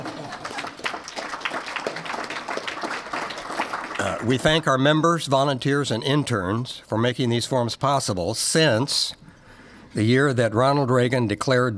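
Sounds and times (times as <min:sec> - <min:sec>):
audience applause: 0:00.0 - 0:04.6
speech: 0:04.0 - 0:09.2, 0:10.0 - 0:11.7.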